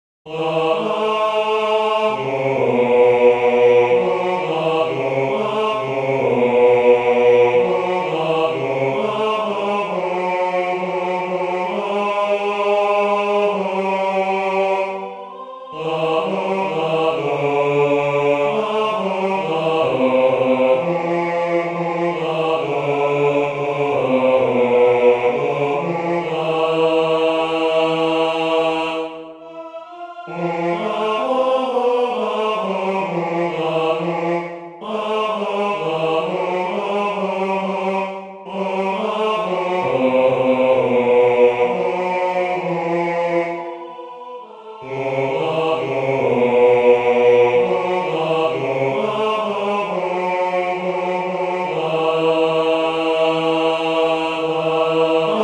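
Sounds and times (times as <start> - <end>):
bass choir singing: 0.3 - 55.4.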